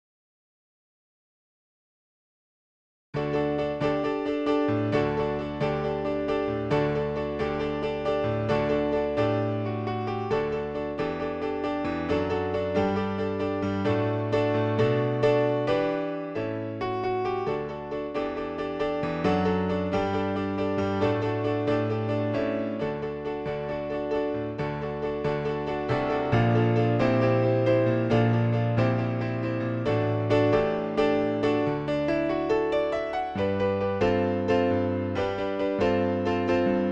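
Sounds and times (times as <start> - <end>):
piano hymn: 3.2 - 36.9.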